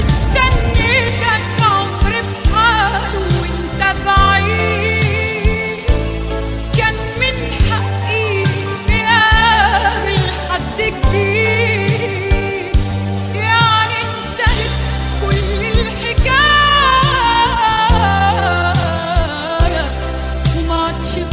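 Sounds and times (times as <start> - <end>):
Arabic sad song: 0.0 - 21.3.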